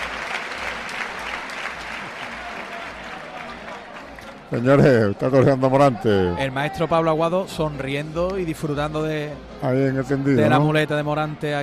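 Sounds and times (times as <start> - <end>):
large crowd applause at a bullring ovation: 0.0 - 5.5
cheering voices: 0.0 - 6.9
speech: 4.5 - 11.6.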